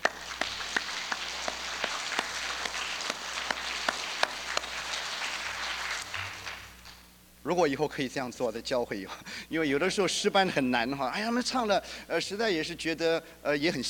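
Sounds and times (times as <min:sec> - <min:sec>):
audience applauding: 0:00.0 - 0:07.0
speech: 0:07.4 - 0:13.8.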